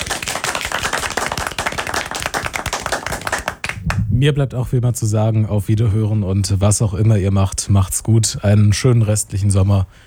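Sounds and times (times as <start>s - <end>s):
audience applause: 0.0s - 3.8s
speech: 4.2s - 10.0s.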